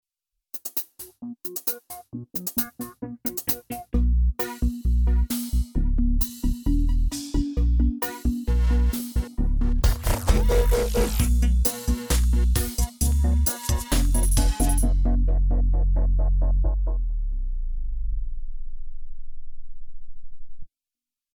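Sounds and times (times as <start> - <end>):
comedic electronic music: 1.2 - 17.5.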